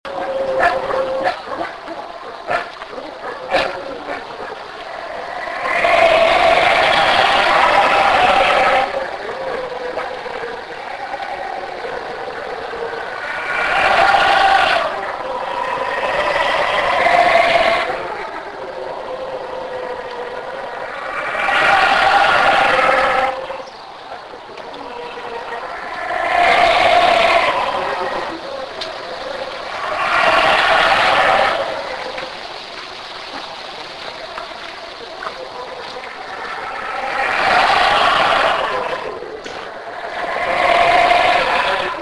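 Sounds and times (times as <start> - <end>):
howler monkey: 0.0 - 41.9.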